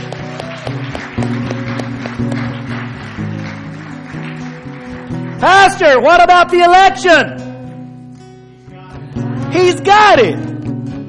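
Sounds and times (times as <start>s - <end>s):
audience clapping hands: 0.0s - 6.6s
speech: 5.4s - 7.4s, 9.5s - 10.4s.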